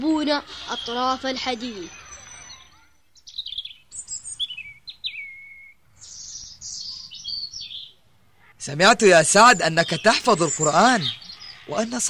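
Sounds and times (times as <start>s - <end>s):
caged sparrows chirping: 0.0s - 12.0s
speech: 0.2s - 2.0s, 8.7s - 12.0s.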